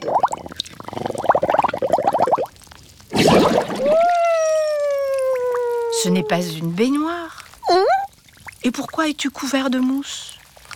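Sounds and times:
water splashing and pouring in a bathroom sink: 0:00.0 - 0:07.6
speech: 0:06.0 - 0:07.3, 0:08.6 - 0:10.3.

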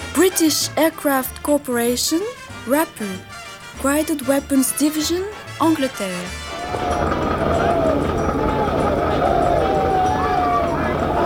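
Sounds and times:
speech: 0:00.2 - 0:07.8
troops shouting before charging to attack: 0:06.5 - 0:11.2.

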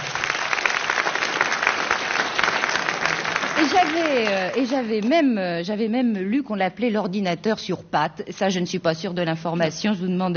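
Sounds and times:
group applauding: 0:00.0 - 0:05.2
speech: 0:03.6 - 0:10.3.

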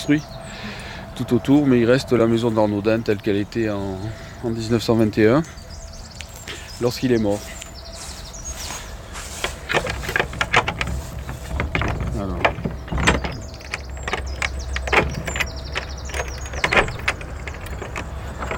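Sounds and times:
speech: 0:00.0 - 0:00.4, 0:01.2 - 0:05.6, 0:06.8 - 0:07.6
old Gascon door lock clicking, scraping and rattling on a historic house: 0:09.4 - 0:18.5.

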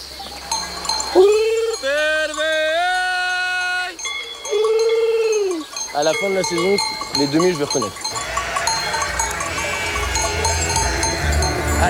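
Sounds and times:
faint bells: 0:00.0 - 0:11.8
speech: 0:06.0 - 0:08.1
shepherd imitating lamb gurgle to call ewes: 0:08.2 - 0:11.8.

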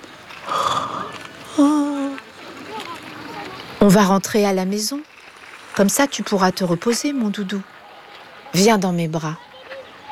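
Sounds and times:
quiet breathing: 0:00.4 - 0:02.2
person yawning: 0:00.5 - 0:02.0
speech: 0:03.8 - 0:05.1, 0:05.8 - 0:07.7, 0:08.5 - 0:09.5.

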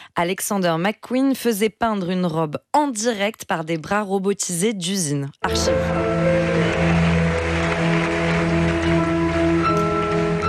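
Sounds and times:
speech: 0:00.2 - 0:07.0
crowd applauding: 0:05.5 - 0:10.4.

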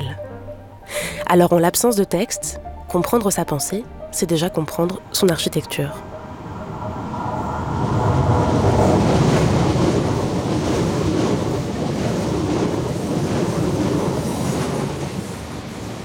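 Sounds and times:
speech: 0:01.3 - 0:06.1
passing train beside a seaside path at Roquebrune-Cap-Martin on the Côte d'Azur: 0:04.4 - 0:16.0.

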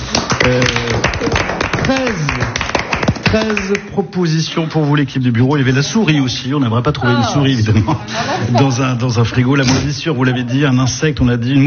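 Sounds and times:
applause: 0:00.0 - 0:04.0
speech: 0:03.3 - 0:11.6
laughter: 0:05.9 - 0:10.9.

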